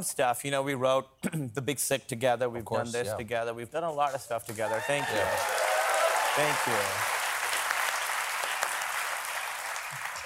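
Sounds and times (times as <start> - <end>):
speech: 0.0 - 5.7, 6.4 - 7.2
audience applause: 4.6 - 10.2.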